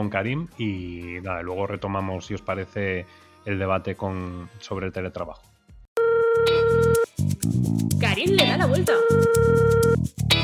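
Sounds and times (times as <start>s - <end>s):
speech: 0.0s - 5.5s, 6.4s - 10.4s
outgoing phone call ring tone: 6.0s - 7.0s, 8.9s - 9.9s.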